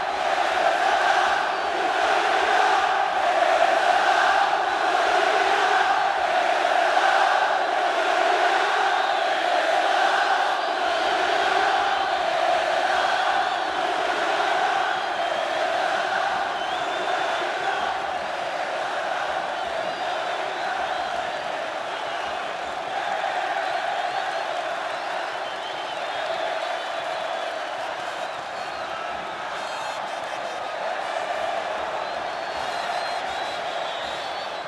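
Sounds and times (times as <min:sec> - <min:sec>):
football supporters crowd shouting goal: 0:00.0 - 0:34.6.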